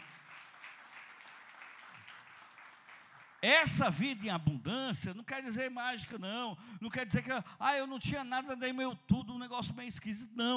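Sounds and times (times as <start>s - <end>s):
crowd applause: 0.0s - 3.9s
speech: 3.4s - 10.5s.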